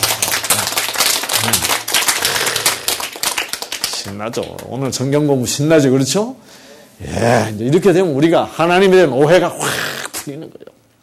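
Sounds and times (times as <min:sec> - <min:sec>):
group clapping: 0:00.0 - 0:05.3
speech: 0:04.1 - 0:10.7.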